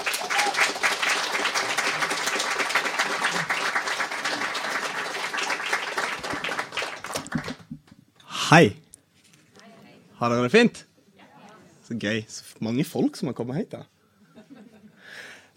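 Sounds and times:
audience applause: 0.0s - 7.7s
speech: 8.5s - 8.8s, 10.2s - 10.9s, 11.9s - 13.9s.

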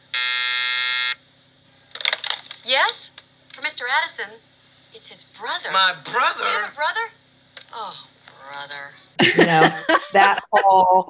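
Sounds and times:
telephone ringing: 0.2s - 1.2s
speech: 3.8s - 11.0s
laughter: 9.2s - 11.0s.

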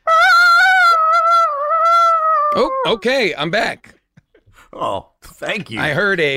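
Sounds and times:
shrill high-pitched vocal scream: 0.0s - 3.0s
speech: 2.6s - 4.0s, 4.7s - 6.3s.

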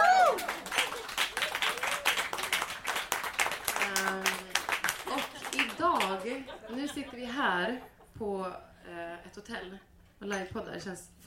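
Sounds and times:
audience applause: 0.0s - 6.4s
laughter: 5.0s - 8.1s
speech: 6.3s - 11.2s.

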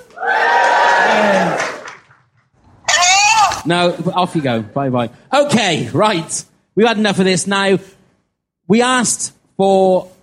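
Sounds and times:
crowd cheering: 0.0s - 2.2s
speech: 3.7s - 8.0s, 8.7s - 10.2s.

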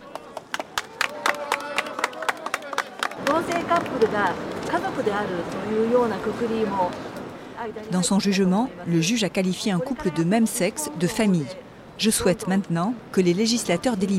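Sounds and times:
supporters applauding outside courthouse: 0.0s - 4.5s
speech: 3.3s - 14.1s.

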